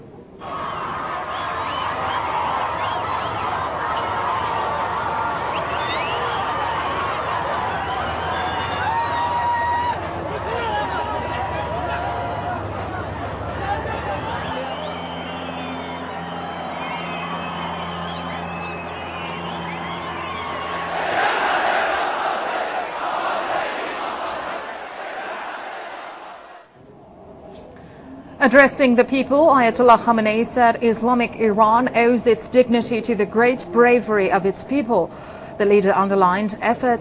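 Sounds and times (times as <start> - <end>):
crowd roaring and shouting in welcome for Ayatollah Ali Khamenei in Sanandaj: 0.4 - 26.7
speech: 28.4 - 36.9.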